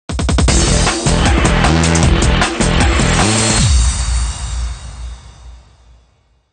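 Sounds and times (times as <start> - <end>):
game music general event: 0.5 - 5.0.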